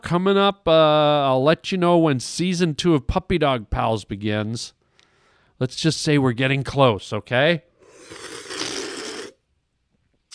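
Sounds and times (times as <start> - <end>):
speech: 0.1 - 4.8, 5.6 - 8.3
person sipping seltzer water: 7.8 - 9.4.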